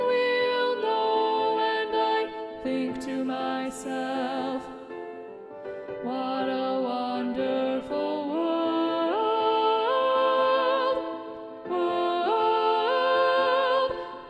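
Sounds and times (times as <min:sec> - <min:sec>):
SATB choir singing with predominant soprano: 0:00.0 - 0:04.7, 0:06.4 - 0:14.2.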